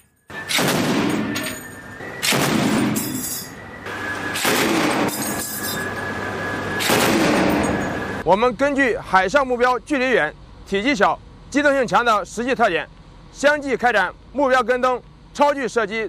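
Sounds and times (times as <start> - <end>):
heavy machine gun firing warning shots at a small boat at sea: 0.3 - 3.2, 4.3 - 5.4, 6.7 - 8.0
speech: 8.3 - 16.0.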